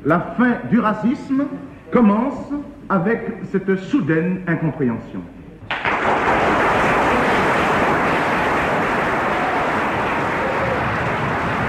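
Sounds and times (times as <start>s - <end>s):
speech: 0.0s - 5.4s
audience applause in a lecture hall at the Sorbonne: 5.7s - 11.6s.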